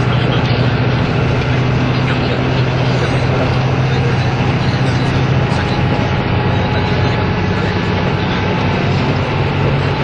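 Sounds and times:
vehicle running noise travelling between Nagoya and Toyama: 0.0 - 10.0.

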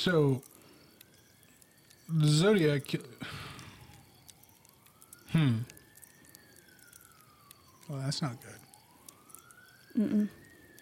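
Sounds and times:
speech: 0.0 - 0.5, 2.1 - 3.4, 5.3 - 5.7, 7.9 - 8.6, 10.0 - 10.4
emergency siren wailing: 0.0 - 10.8.

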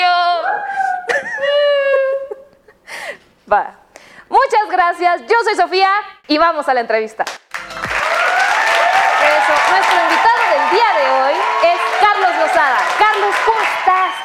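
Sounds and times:
laughter: 0.8 - 2.5
speech: 3.5 - 7.4
audience applause: 7.5 - 14.2.

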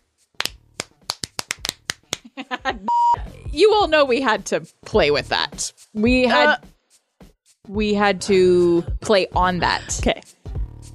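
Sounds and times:
weird dull hand clap: 0.3 - 2.3
speech: 3.6 - 6.7, 7.7 - 10.3.

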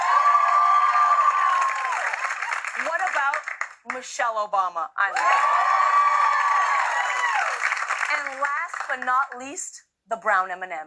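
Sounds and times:
audience cheering: 0.0 - 3.0, 5.1 - 8.5
audience applause: 0.0 - 3.8, 5.2 - 9.1
speech: 3.9 - 5.8, 8.2 - 10.8.

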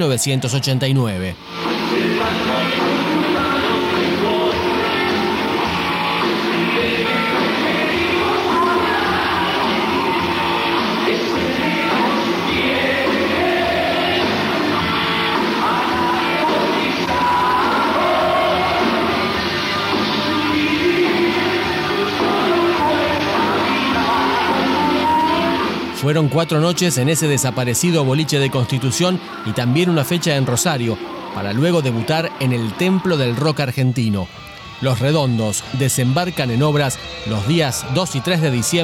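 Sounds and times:
speech: 0.0 - 2.8, 26.0 - 38.8
low-quality live rock concert recording: 1.4 - 26.6, 34.3 - 38.8.

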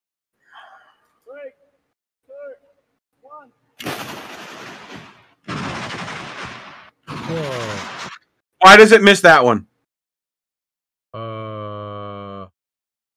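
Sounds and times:
speech: 8.6 - 9.7
vocal exclamations: 11.2 - 12.5.

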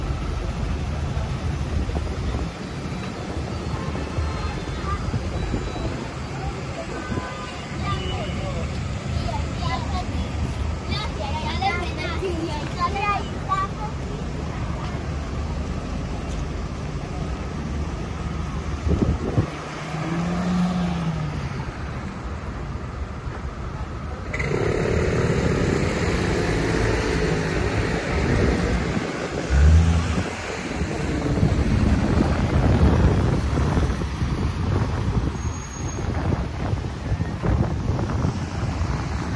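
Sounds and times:
traffic rumble on a street in Tel Aviv, Israel: 0.0 - 39.3
wind buffeting the microphone: 18.7 - 19.6, 26.0 - 39.3.

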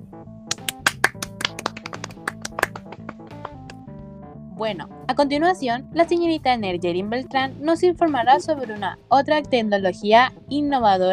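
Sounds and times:
audience applause: 0.5 - 3.8
speech: 4.6 - 11.1.

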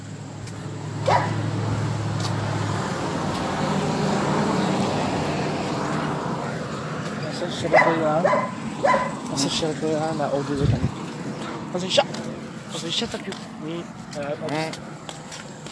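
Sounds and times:
road traffic rumble: 0.0 - 15.6
dog barking: 1.0 - 1.4, 7.7 - 9.2
speech: 7.6 - 11.0, 11.7 - 14.9.

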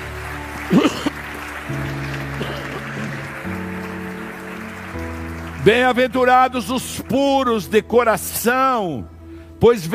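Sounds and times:
audience applauding: 0.0 - 7.6
sustained keyboard chords: 0.0 - 9.9
speech: 0.7 - 1.0, 5.7 - 9.9.

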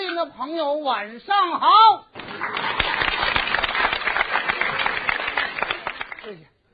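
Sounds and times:
speech: 0.2 - 3.6, 6.3 - 6.5
audience applause: 2.2 - 6.4.

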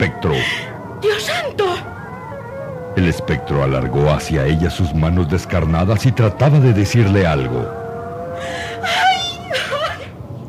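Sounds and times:
woman screaming in fright: 0.0 - 2.0, 8.4 - 10.1
speech: 0.0 - 2.2, 3.0 - 7.8.

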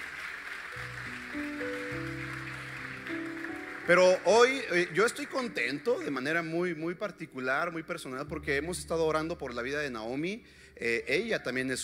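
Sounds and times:
audience applause: 0.0 - 6.2
speech: 3.9 - 11.8.

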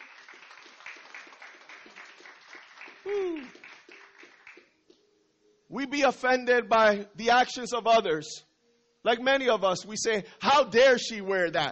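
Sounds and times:
audience applause: 0.0 - 4.7
loud whooping cheer sliding downward: 3.0 - 3.6
speech: 3.1 - 3.6, 5.7 - 11.7.

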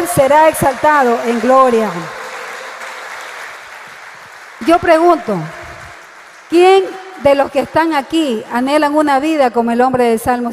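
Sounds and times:
audience applause: 0.0 - 8.2
speech: 0.2 - 2.2, 4.6 - 5.6, 6.5 - 10.5.

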